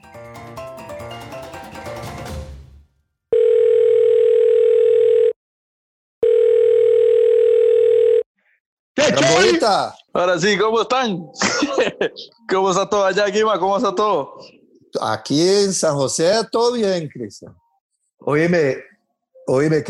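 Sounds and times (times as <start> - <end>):
telephone dial tone beeps: 3.4 - 5.4, 6.2 - 8.3
speech: 9.2 - 17.6, 18.2 - 18.9, 19.5 - 19.8
laughter: 11.4 - 12.4.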